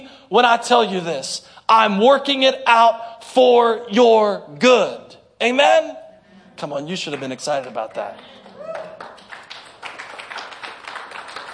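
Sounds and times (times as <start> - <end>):
speech: 0.0 - 6.0, 6.6 - 8.4
audience clapping: 7.0 - 11.5.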